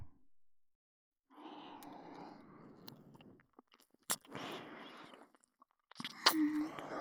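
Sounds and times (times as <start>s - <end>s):
ear licking sounds: 2.8s - 6.9s.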